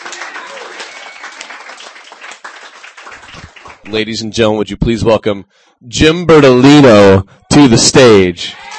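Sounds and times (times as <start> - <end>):
audience applauding after a reading: 0.0 - 4.0
speech: 3.9 - 8.7.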